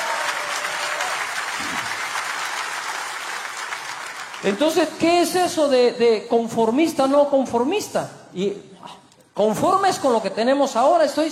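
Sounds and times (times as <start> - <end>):
audience applause: 0.0 - 4.8
speech: 4.4 - 11.3.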